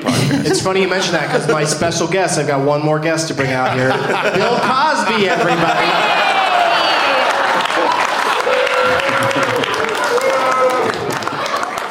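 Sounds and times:
laughter: 0.0s - 2.1s, 3.4s - 11.8s
speech: 0.4s - 6.2s
audience booing: 4.0s - 11.8s.

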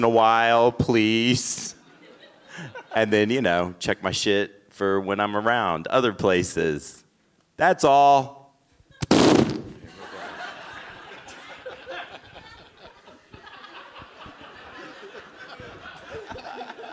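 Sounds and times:
speech: 0.0s - 1.8s, 2.6s - 7.0s, 7.6s - 8.4s
loud violent fart: 9.0s - 9.9s
snickering and chuckling laughter: 9.9s - 16.9s.

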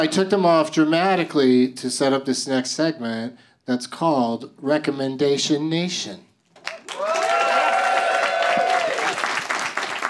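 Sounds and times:
speech: 0.0s - 6.3s
audience applause: 6.6s - 10.0s.

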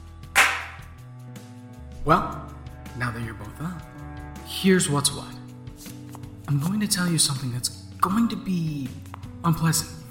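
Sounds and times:
single hand clap: 0.4s - 0.9s
speech: 2.0s - 2.4s, 3.0s - 5.4s, 6.5s - 10.0s.

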